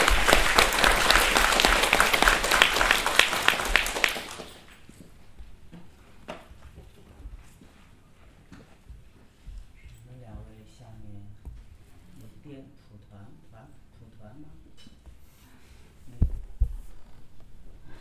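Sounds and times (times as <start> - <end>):
audience applause: 0.0 - 4.8.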